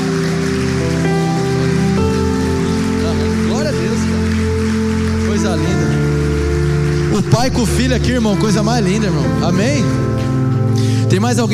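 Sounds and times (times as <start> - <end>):
crowd clapping: 0.0 - 11.5
sustained keyboard chords: 0.0 - 11.5
speech: 7.4 - 10.2, 11.1 - 11.5.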